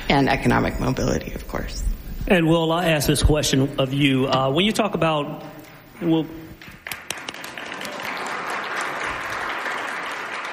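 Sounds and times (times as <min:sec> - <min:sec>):
speech: 0:00.1 - 0:06.4
audience applause at a panel discussion on economic mobility: 0:06.6 - 0:10.5.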